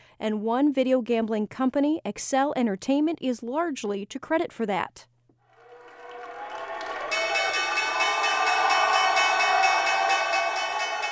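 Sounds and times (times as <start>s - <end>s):
speech: 0.2s - 5.1s
New York Stock Exchange opening bell ringing: 7.1s - 11.1s.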